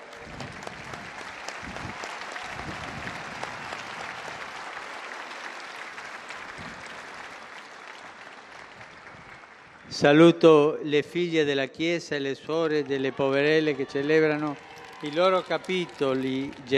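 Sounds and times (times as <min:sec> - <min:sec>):
sustained applause from a large crowd: 0:00.0 - 0:10.2, 0:12.5 - 0:16.7
speech: 0:10.0 - 0:16.7.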